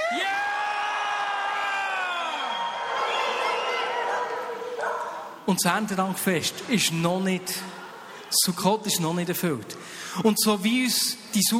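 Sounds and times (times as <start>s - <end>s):
crowd cheering and whooping: 0.0s - 5.4s
speech: 5.5s - 11.5s.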